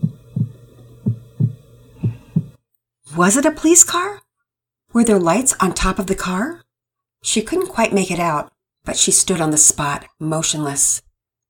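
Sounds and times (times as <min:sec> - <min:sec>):
heart thumping: 0:00.0 - 0:02.6
speech: 0:03.2 - 0:04.2, 0:05.0 - 0:06.6, 0:07.2 - 0:11.1.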